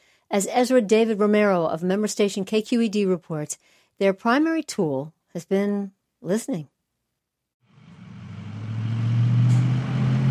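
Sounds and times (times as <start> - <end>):
speech: 0.3 - 6.7
white pickup truck engine driving on a road in North Fair Oaks: 7.7 - 10.2.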